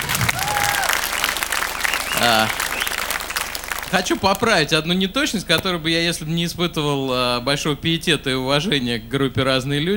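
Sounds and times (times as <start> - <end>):
brief voiced cheer: 0.0 - 4.4
crowd applause: 0.0 - 4.7
short rising whistle: 0.3 - 3.8
speech: 2.2 - 2.6, 3.9 - 9.9.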